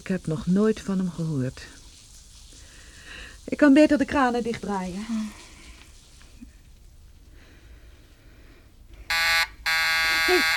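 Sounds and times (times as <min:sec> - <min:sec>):
speech: 0:00.1 - 0:01.8, 0:03.4 - 0:05.5, 0:10.3 - 0:10.5
telephone ringing: 0:09.1 - 0:10.5.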